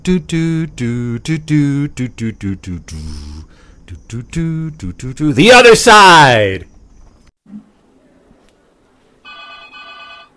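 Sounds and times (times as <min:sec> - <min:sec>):
speech: 0:00.0 - 0:06.7
low steady hum: 0:00.0 - 0:10.3
telephone ringing: 0:09.2 - 0:10.3.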